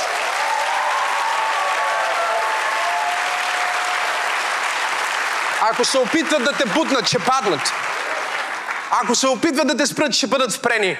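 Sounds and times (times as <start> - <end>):
faint voices and cheers: 0.0 - 4.4
audience applause: 0.0 - 9.4
speech: 5.6 - 7.9, 8.9 - 10.9.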